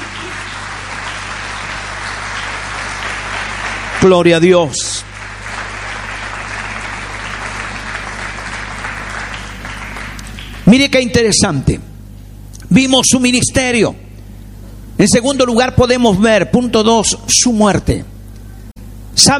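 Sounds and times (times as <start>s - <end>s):
audience applause: 0.0s - 10.8s
speech: 4.0s - 5.1s, 10.7s - 11.9s, 12.7s - 14.0s, 15.0s - 18.1s.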